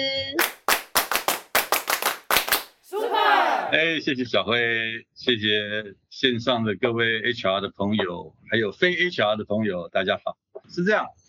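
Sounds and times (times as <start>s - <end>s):
warm applause welcoming a speaker: 0.4s - 4.0s
speech: 3.7s - 11.2s.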